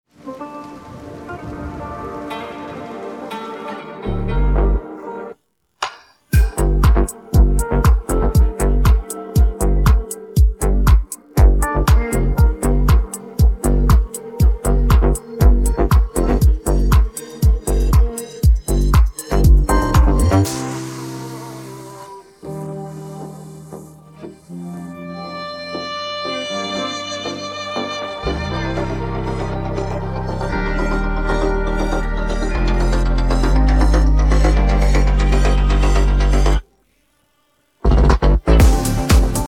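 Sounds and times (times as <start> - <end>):
instrumental music: 0.1 - 5.4, 6.3 - 36.6, 37.8 - 39.4.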